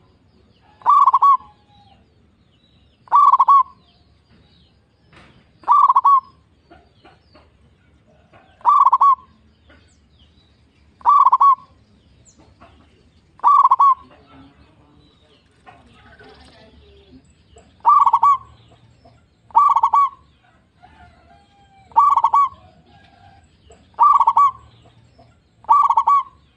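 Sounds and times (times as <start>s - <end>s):
zebra dove cooing: 0.0s - 2.0s, 3.0s - 3.8s, 5.6s - 6.9s, 8.1s - 9.4s, 11.0s - 11.8s, 12.6s - 14.8s, 15.7s - 26.5s.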